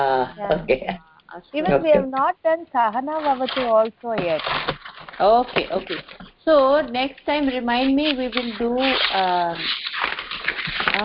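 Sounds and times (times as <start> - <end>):
speech: 0.0 - 10.1
paper rustling: 3.1 - 6.3, 7.3 - 11.0.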